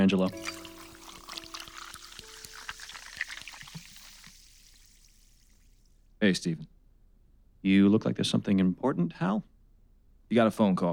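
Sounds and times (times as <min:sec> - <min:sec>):
speech: 0:00.0 - 0:00.7, 0:06.2 - 0:06.8, 0:07.6 - 0:09.5, 0:10.3 - 0:10.9
drink pouring into a glass: 0:00.0 - 0:05.9.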